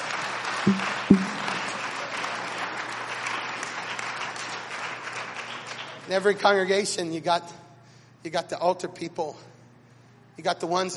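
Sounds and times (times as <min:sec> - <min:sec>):
crowd clapping hands: 0:00.0 - 0:06.3
speech: 0:00.6 - 0:01.0, 0:06.1 - 0:07.6, 0:08.2 - 0:09.5, 0:10.4 - 0:10.9
sharp low thuds: 0:00.7 - 0:01.5.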